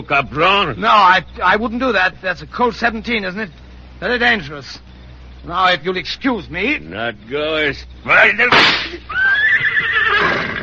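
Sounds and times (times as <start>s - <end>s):
speech: 0.0s - 9.4s
horse whinnying: 9.1s - 10.6s.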